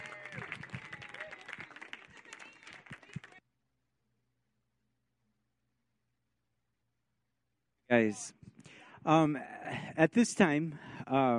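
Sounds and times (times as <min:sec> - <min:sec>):
audience applause: 0:00.0 - 0:03.4
speech: 0:07.9 - 0:08.4, 0:09.0 - 0:11.3.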